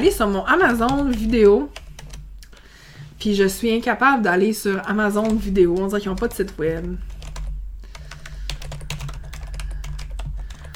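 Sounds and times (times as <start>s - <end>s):
speech: 0.0s - 1.8s, 3.2s - 7.1s
low constant hum: 0.0s - 10.7s
typing on a computer keyboard to search for Amazon Prime Video: 0.1s - 2.7s, 4.7s - 10.7s.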